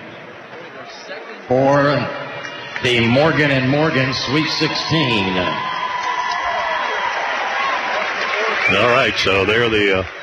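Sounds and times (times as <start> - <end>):
speech: 0.9 - 2.2, 2.8 - 5.7, 8.7 - 10.2
crowd applause for a high school basketball team at a Sweet 16 trophy ceremony: 2.3 - 10.2.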